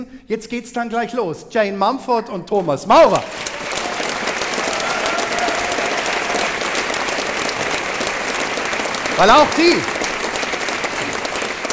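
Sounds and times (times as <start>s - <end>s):
speech: 0.0s - 3.8s, 9.2s - 10.0s
audience applause: 3.2s - 11.7s.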